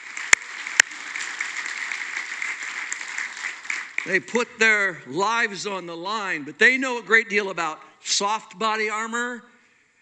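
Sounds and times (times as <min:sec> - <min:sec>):
sharp louder claps: 0:00.0 - 0:04.9
audience applauding: 0:00.0 - 0:06.3
speech: 0:04.0 - 0:09.5.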